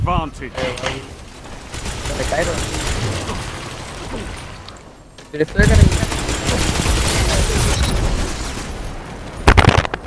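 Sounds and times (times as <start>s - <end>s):
speech: 0.0s - 1.2s, 1.8s - 3.3s, 4.1s - 4.4s, 5.3s - 6.7s
gunfire in video game Destiny 2: 1.4s - 4.6s, 5.5s - 10.0s.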